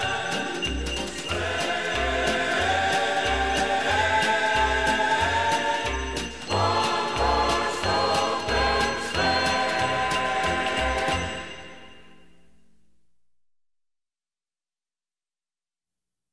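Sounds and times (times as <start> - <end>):
Christmas song: 0.0 - 12.8.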